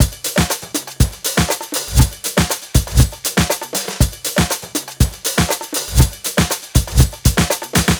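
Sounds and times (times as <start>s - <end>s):
busy nu jazz house beat at 120: 0.0s - 7.9s.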